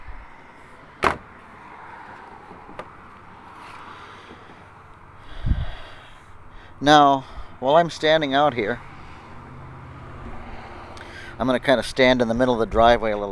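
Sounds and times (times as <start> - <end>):
deck gate clack: 1.0 - 1.4
low thump of the deck gate closing: 1.0 - 1.4
speech: 6.8 - 8.9, 11.4 - 13.3.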